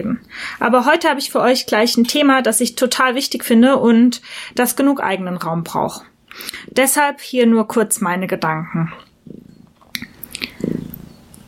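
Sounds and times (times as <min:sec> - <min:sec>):
speech: 0:00.0 - 0:09.4
cat purring on a lap: 0:09.1 - 0:09.8, 0:10.4 - 0:11.2.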